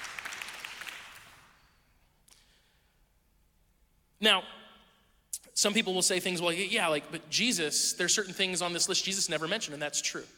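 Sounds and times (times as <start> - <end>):
audience clapping: 0.0 - 1.6
speech: 4.2 - 4.6, 5.6 - 10.3.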